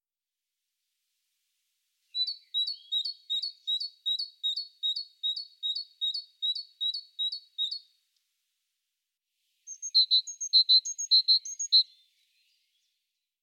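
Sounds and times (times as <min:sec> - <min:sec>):
great tit singing: 0:02.1 - 0:07.9, 0:09.7 - 0:12.1.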